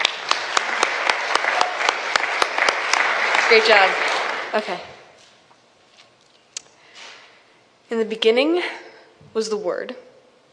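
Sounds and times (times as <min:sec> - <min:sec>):
audience applause: 0:00.0 - 0:04.8
speech: 0:03.5 - 0:04.9, 0:07.9 - 0:10.0.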